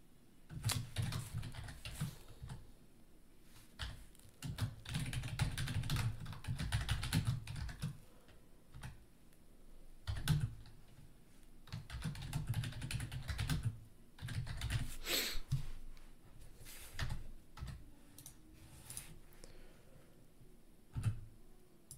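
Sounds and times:
typing on a computer keyboard: 0.5 - 2.6, 3.8 - 8.0, 8.7 - 9.0, 10.0 - 10.8, 11.7 - 14.9, 17.0 - 19.0, 20.9 - 21.2.

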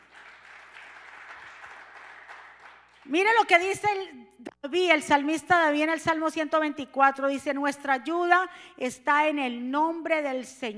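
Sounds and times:
audience applause: 0.0 - 3.0
speech: 3.0 - 10.7.

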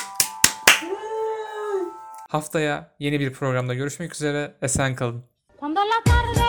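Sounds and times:
clapping: 0.0 - 0.9
speech: 2.3 - 6.4.

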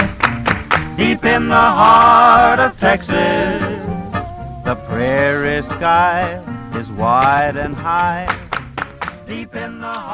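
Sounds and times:
sharp hand claps: 0.0 - 1.1, 8.0 - 9.3
voices singing sustained notes: 0.9 - 8.3, 9.0 - 10.1
speech: 1.0 - 3.6, 4.7 - 8.4, 9.3 - 10.1.

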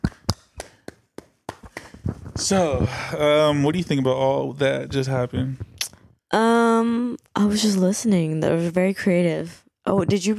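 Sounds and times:
hand clapping: 0.0 - 2.8
speech: 2.4 - 5.7, 6.8 - 10.3.

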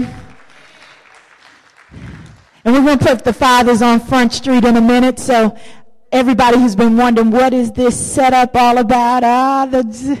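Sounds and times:
audience clapping: 0.0 - 2.7
speech: 2.7 - 10.1.

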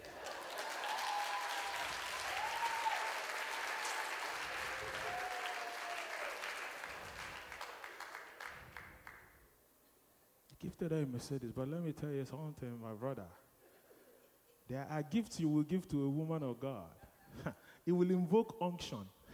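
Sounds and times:
audience clapping: 0.0 - 9.3
speech: 10.8 - 13.4, 14.7 - 19.3.

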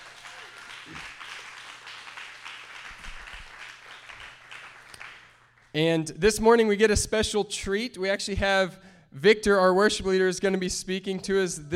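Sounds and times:
church audience applause for the fathers on Father's Day: 0.0 - 5.6
speech: 5.8 - 11.7.

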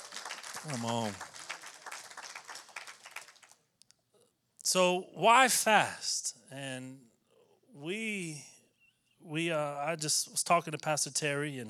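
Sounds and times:
audience clapping: 0.0 - 3.6
speech: 0.6 - 1.3, 4.7 - 7.1, 7.8 - 8.5, 9.2 - 11.6.

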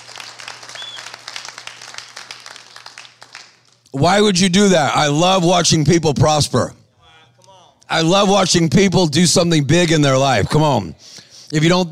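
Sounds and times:
audience clapping: 0.0 - 4.0
speech: 3.9 - 6.8, 7.9 - 11.8.

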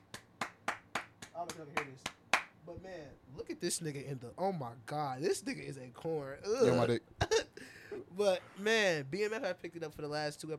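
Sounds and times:
hand clapping: 0.0 - 2.6
speech: 1.4 - 7.2, 7.9 - 10.5.

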